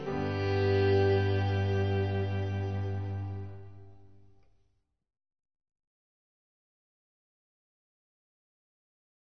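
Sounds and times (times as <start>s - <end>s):
instrumental hymn: 0.0s - 4.5s.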